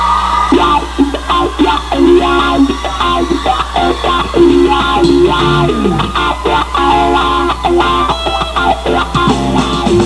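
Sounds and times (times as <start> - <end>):
guitar: 0.0 - 10.0.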